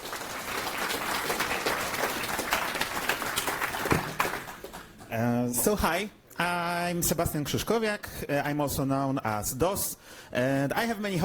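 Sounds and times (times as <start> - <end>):
big round of applause: 0.0 - 5.1
speech: 5.2 - 11.2.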